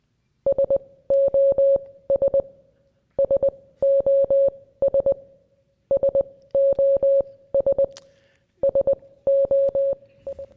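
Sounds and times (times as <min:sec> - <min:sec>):
Morse code telegraph beeps: 0:00.5 - 0:02.5, 0:03.2 - 0:05.2, 0:05.9 - 0:07.9, 0:08.6 - 0:10.5.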